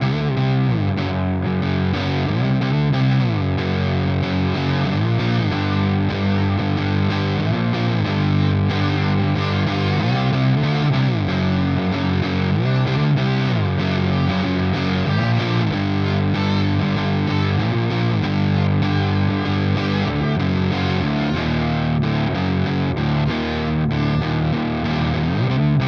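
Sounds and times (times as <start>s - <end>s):
saturated fuzz from a ripped broken speaker: 0.0s - 25.8s.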